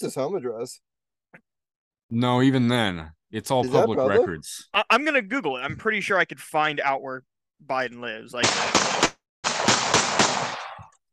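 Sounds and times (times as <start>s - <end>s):
speech: 0.0s - 1.5s, 2.1s - 9.0s
gunshots: 8.4s - 11.0s.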